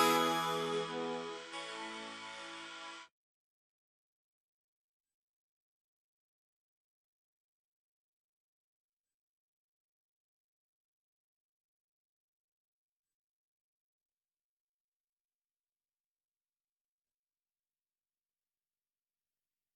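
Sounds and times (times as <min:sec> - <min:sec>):
synth: 0:00.0 - 0:03.0.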